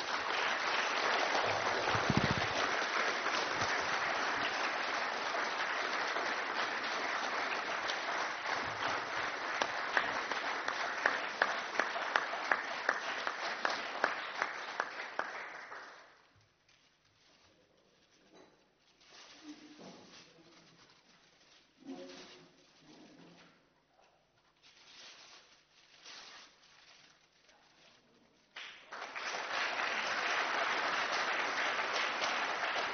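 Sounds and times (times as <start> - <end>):
audience applause: 0.0 - 16.1, 28.6 - 32.9.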